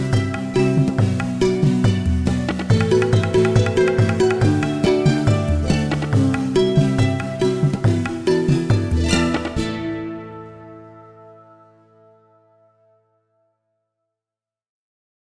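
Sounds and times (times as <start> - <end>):
folk rock music: 0.0 - 11.4.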